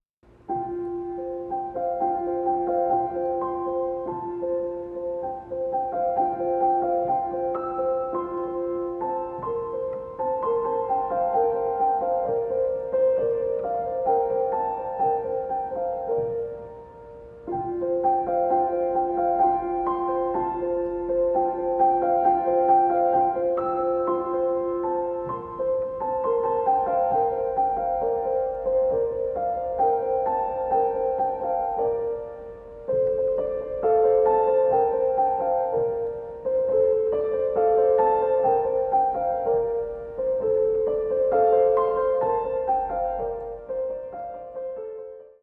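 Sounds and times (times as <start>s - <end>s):
piano piece: 0.2s - 45.4s.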